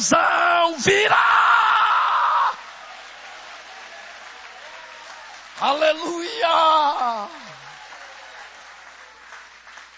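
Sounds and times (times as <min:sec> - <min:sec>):
speech: 0:00.0 - 0:01.4, 0:05.6 - 0:07.4
audience applauding and cheering: 0:00.6 - 0:09.9.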